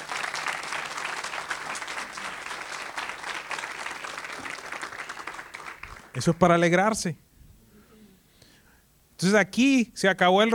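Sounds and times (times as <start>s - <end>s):
audience applause: 0.0s - 6.4s
speech: 6.2s - 7.2s, 9.2s - 10.5s.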